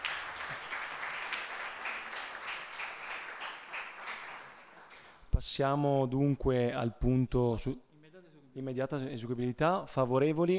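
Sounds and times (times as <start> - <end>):
applause: 0.0 - 5.2
speech: 5.4 - 7.9, 8.6 - 10.5.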